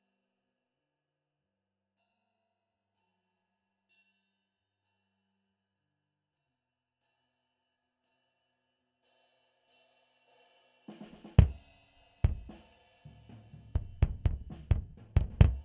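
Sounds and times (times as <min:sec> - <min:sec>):
bass drum: 0:11.4 - 0:11.6, 0:12.3 - 0:12.6, 0:13.7 - 0:15.6.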